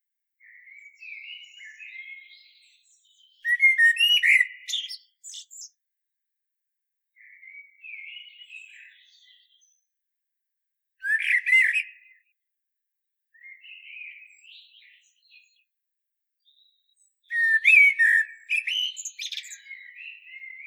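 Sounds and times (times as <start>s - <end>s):
common blackbird singing: 0.4s - 5.7s, 7.2s - 9.8s, 11.0s - 12.3s, 13.4s - 15.6s, 16.4s - 20.6s.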